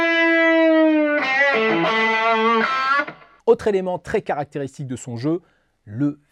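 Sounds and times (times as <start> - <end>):
distorted electric guitar playing a pre-bent note: 0.0 - 3.4
speech: 3.5 - 6.3.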